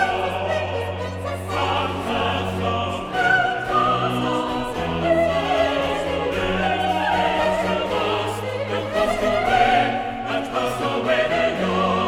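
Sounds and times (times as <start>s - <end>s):
chorus singing: 0.0s - 12.0s.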